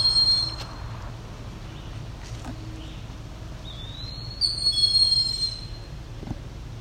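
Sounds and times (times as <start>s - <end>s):
eastern wood-pewee calling: 0.0s - 0.8s, 3.6s - 5.9s
steady low mechanical rumble: 0.0s - 6.8s.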